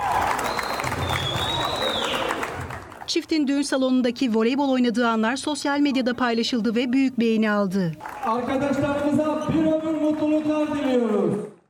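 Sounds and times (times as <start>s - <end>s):
wedding guests applauding: 0.0s - 3.1s, 8.0s - 11.6s
speech: 3.1s - 11.5s.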